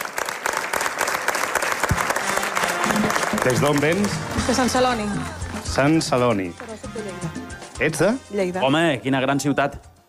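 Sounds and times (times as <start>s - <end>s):
audience applause: 0.0s - 6.2s
speech: 3.4s - 9.9s.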